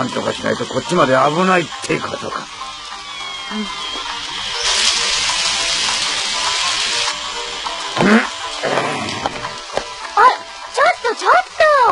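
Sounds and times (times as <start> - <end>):
speech: 0.0 - 2.6, 3.5 - 4.1
heavy rain: 0.8 - 11.8.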